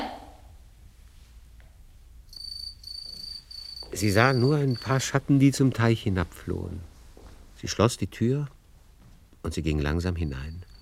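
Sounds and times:
house crickets chirping: 2.3s - 5.6s, 10.2s - 10.8s
speech: 4.0s - 6.9s, 7.6s - 8.6s, 9.4s - 10.7s.

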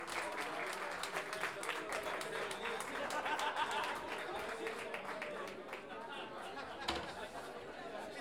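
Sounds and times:
audience applause: 0.0s - 6.4s
laughter: 1.7s - 8.1s.

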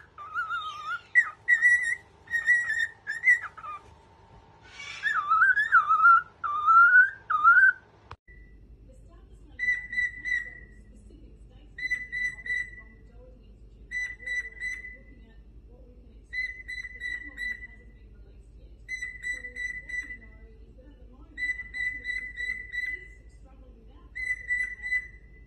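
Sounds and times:
cockatiel whistling: 0.0s - 3.9s, 4.7s - 8.4s, 9.6s - 10.7s, 11.8s - 12.8s, 13.9s - 15.1s, 16.3s - 17.7s, 18.9s - 20.3s, 21.4s - 23.1s, 24.1s - 25.4s.

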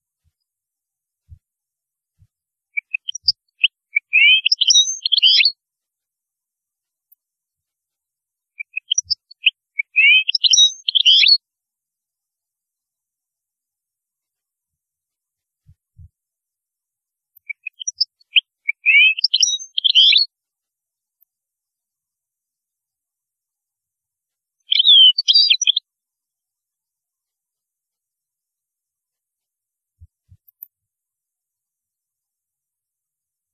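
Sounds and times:
European goldfinch twittering song: 2.8s - 5.6s, 8.6s - 11.4s, 17.4s - 20.3s, 24.6s - 25.8s.

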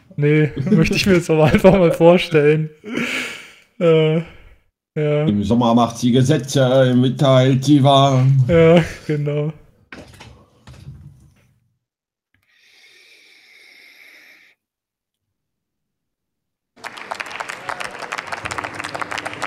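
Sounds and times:
speech: 0.2s - 3.2s, 3.8s - 4.4s, 5.0s - 10.1s
applause in a parliament chamber: 16.8s - 19.4s.

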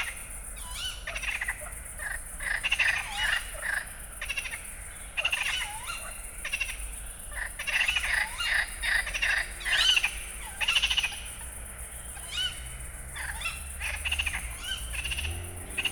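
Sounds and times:
frog chorus croaking at night at a pond in Fenouillet France: 0.0s - 15.9s.

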